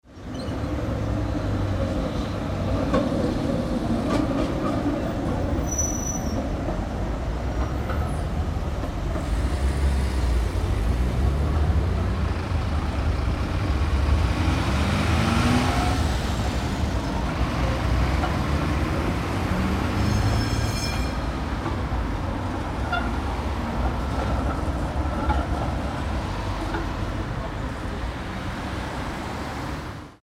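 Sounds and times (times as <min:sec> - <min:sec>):
traffic: 0:00.0 - 0:30.2.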